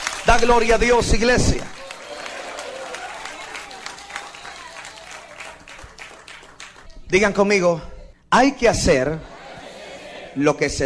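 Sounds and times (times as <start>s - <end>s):
church audience applauding: 0.0s - 7.4s
speech: 0.3s - 1.8s, 7.1s - 9.3s, 10.4s - 10.8s
laughter: 8.9s - 10.5s.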